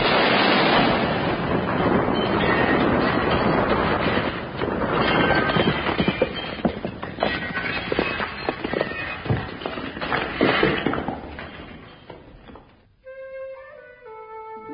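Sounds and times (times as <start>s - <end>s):
grenade explosion: 0.0s - 11.9s
debris clattering and crackling: 0.0s - 13.0s.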